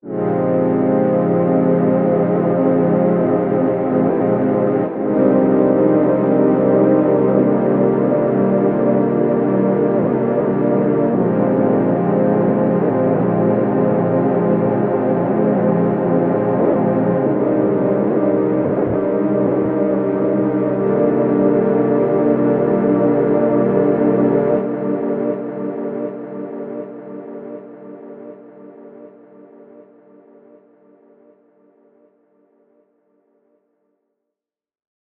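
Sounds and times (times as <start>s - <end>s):
dark synth pad: 0.1s - 29.8s.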